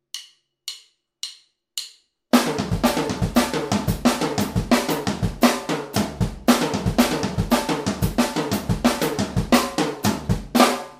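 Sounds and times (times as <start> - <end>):
all-purpose drum break by drummer: 2.3 - 10.9.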